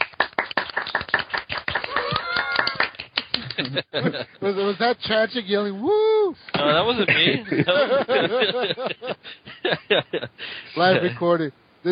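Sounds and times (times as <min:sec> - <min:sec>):
hand clapping: 0:00.0 - 0:04.0
laughter: 0:01.9 - 0:04.8, 0:06.6 - 0:11.2
speech: 0:03.6 - 0:11.9.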